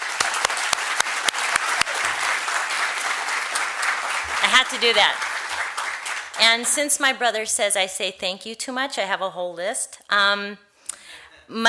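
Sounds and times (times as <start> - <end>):
audience applauding: 0.0 - 8.0
speech: 4.6 - 5.3, 6.4 - 10.7, 11.5 - 11.6.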